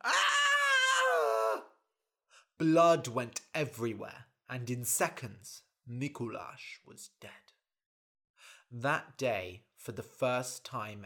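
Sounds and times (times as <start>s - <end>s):
boy screaming: 0.0s - 1.8s
speech: 2.6s - 7.5s, 8.7s - 11.0s.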